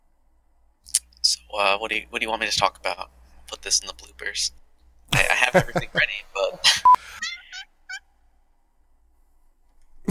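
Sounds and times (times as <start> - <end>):
speech: 1.5 - 7.2
laughter: 5.1 - 7.6
cat squeaking: 6.7 - 8.0.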